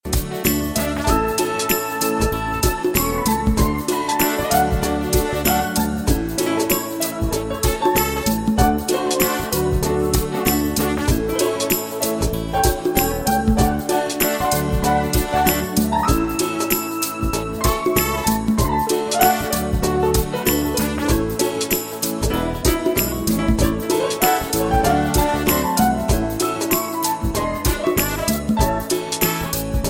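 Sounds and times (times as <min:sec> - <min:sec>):
swing music: 0:00.0 - 0:29.8.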